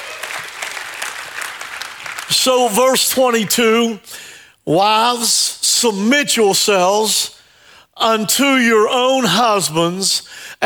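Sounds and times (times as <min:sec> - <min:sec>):
crowd clapping: 0:00.0 - 0:02.8
speech: 0:02.3 - 0:07.4, 0:08.0 - 0:10.6.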